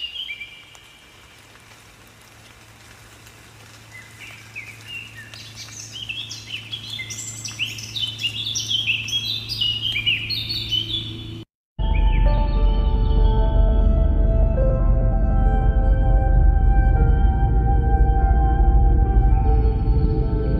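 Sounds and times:
blackcap singing: 0:00.0 - 0:01.0, 0:03.9 - 0:14.0
soft rain patter: 0:00.0 - 0:09.2
low steady hum: 0:05.2 - 0:20.5.

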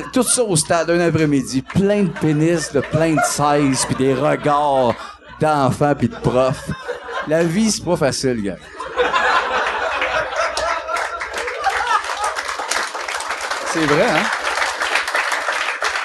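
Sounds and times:
laughter: 0:00.0 - 0:07.8, 0:08.6 - 0:12.6
speech: 0:00.0 - 0:08.8, 0:13.8 - 0:14.4
audience applause: 0:09.7 - 0:16.0.

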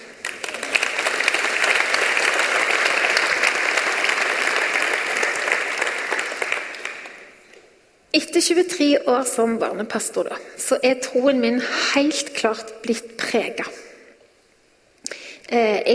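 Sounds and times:
audience clapping: 0:00.0 - 0:07.5
speech: 0:08.2 - 0:13.8, 0:15.5 - 0:15.9.

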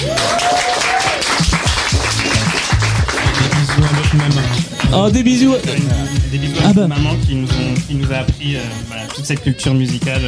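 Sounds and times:
live audience applause: 0:00.0 - 0:05.5
speech: 0:04.9 - 0:10.2.

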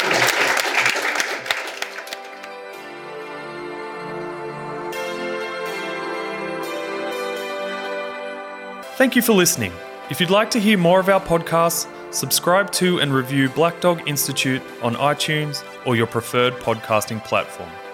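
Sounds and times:
audience applause: 0:00.0 - 0:02.6
instrumental music: 0:00.0 - 0:17.9
speech: 0:09.0 - 0:17.8.

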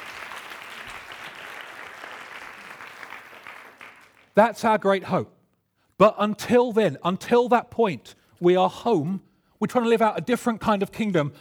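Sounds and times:
audience applause: 0:00.0 - 0:04.4
speech: 0:04.4 - 0:05.4, 0:06.0 - 0:11.3.

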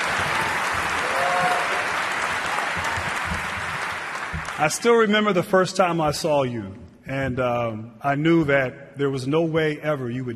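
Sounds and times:
crowd applause: 0:00.0 - 0:05.1
speech: 0:04.6 - 0:10.3.

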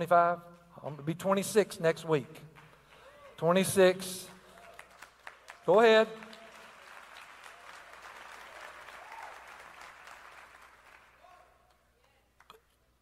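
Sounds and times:
speech: 0:00.0 - 0:02.5, 0:03.4 - 0:04.4, 0:05.6 - 0:06.2
audience clapping: 0:02.5 - 0:03.4, 0:04.5 - 0:12.6.

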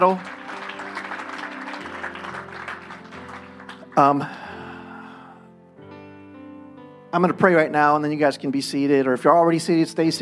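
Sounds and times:
speech: 0:00.0 - 0:00.3, 0:04.0 - 0:04.4, 0:07.1 - 0:10.2
audience applause: 0:00.0 - 0:04.7
sustained keyboard chords: 0:00.0 - 0:10.2.

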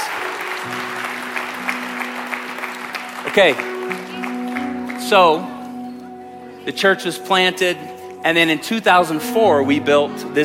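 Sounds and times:
audience clapping for children at a church service: 0:00.0 - 0:05.8
sustained musical tones: 0:00.1 - 0:10.4
speech: 0:03.4 - 0:03.7, 0:05.0 - 0:05.6, 0:06.6 - 0:10.4.

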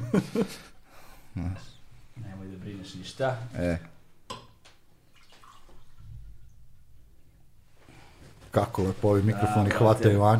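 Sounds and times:
laughter: 0:00.0 - 0:00.8
speech: 0:00.1 - 0:00.7, 0:01.4 - 0:01.8, 0:02.4 - 0:03.9, 0:08.5 - 0:10.3
drink being poured for a guest: 0:05.0 - 0:07.5.

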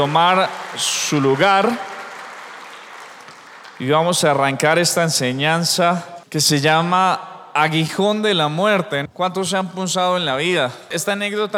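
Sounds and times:
speech: 0:00.0 - 0:01.9, 0:03.8 - 0:11.5
applause from many hands: 0:00.0 - 0:04.6.

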